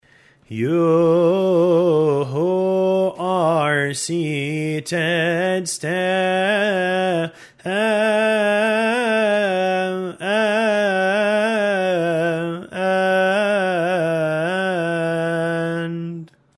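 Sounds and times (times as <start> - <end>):
Gregorian chant: 0.5 - 16.3.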